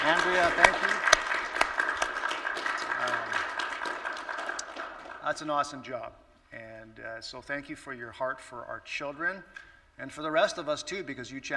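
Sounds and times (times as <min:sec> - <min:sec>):
audience clapping: 0:00.0 - 0:05.8
speech: 0:00.3 - 0:00.9, 0:05.4 - 0:11.5.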